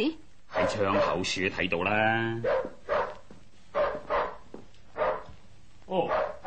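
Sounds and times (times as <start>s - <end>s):
speech: 0.0s - 2.7s
dog barking: 0.5s - 1.3s, 2.4s - 5.4s, 6.0s - 6.4s.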